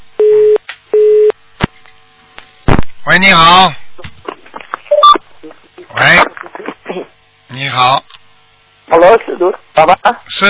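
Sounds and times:
telephone busy tone after a call disconnects: 0.2 - 1.3
speech: 3.1 - 3.8, 5.9 - 6.3, 7.6 - 8.0, 9.0 - 10.4.

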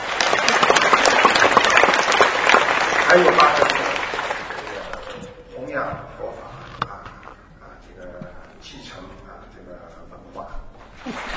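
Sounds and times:
crowd applause: 0.0 - 5.5, 11.0 - 11.3
speech: 3.1 - 3.8.

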